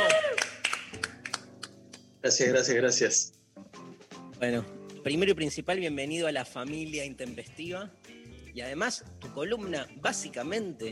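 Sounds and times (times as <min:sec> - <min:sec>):
applause: 0:00.0 - 0:01.6
speech: 0:02.2 - 0:03.4, 0:04.4 - 0:10.9.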